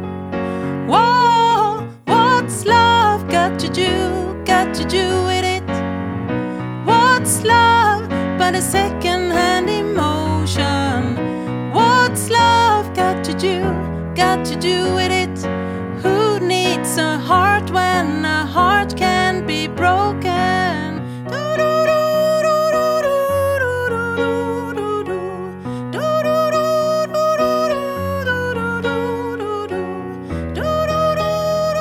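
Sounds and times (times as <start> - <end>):
soprano voice: 0.5 - 5.9, 6.8 - 31.7.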